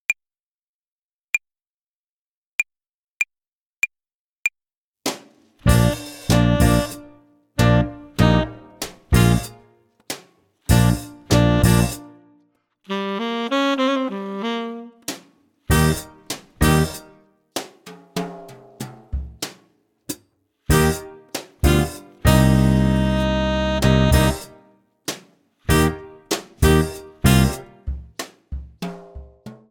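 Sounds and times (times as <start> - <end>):
tenor saxophone jazz club play-along: 5.7 - 9.6, 10.7 - 12.3, 12.9 - 15.1, 15.7 - 17.0, 20.7 - 24.6, 25.7 - 27.8.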